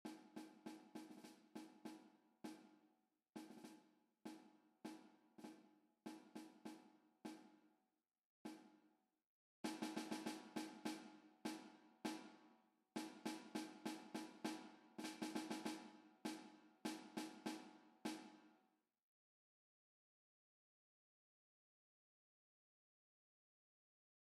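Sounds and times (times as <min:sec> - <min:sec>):
snare drum: 0:00.0 - 0:02.7, 0:03.4 - 0:07.4, 0:09.7 - 0:12.4, 0:13.0 - 0:18.5.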